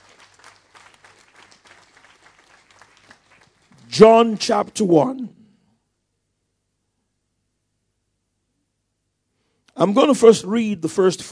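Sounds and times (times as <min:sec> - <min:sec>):
audience clapping: 0:00.0 - 0:05.1
speech: 0:03.9 - 0:05.4, 0:09.8 - 0:11.3.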